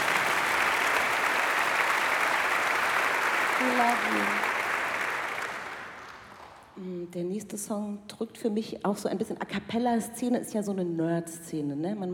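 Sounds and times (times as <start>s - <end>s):
crowd applauding: 0.0s - 6.7s
speech: 7.1s - 12.1s.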